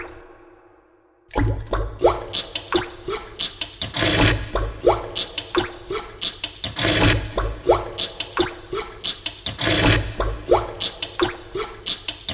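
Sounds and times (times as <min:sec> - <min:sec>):
home-made music beat: 0:01.5 - 0:03.8, 0:04.5 - 0:09.5, 0:10.1 - 0:12.2.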